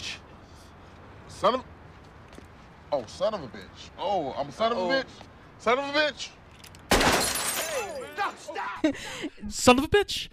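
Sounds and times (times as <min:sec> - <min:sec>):
speech: 0:01.4 - 0:01.7, 0:02.9 - 0:06.4, 0:08.2 - 0:10.3
windshield glass shattering: 0:06.9 - 0:08.3.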